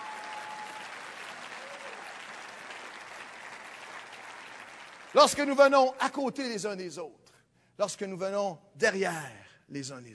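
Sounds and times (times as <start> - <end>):
audience applause: 0.0 - 5.7
speech: 5.2 - 7.2, 7.8 - 10.1.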